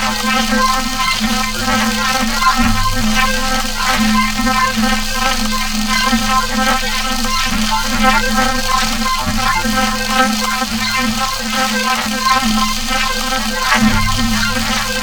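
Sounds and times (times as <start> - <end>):
high crazy atmospheric didgeridoo: 0.0 - 15.0.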